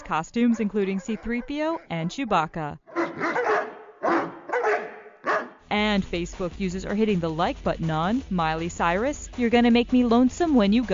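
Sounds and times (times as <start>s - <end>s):
speech: 0.1s - 3.5s, 5.7s - 10.9s
chorus of dogs barking and howling a march tune: 0.4s - 5.6s.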